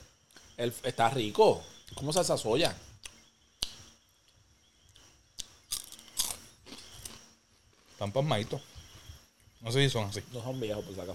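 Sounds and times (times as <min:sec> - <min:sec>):
speech: 0:00.6 - 0:02.9, 0:08.0 - 0:08.7, 0:09.6 - 0:11.1
biting and crunching a crispy snack: 0:05.4 - 0:08.0.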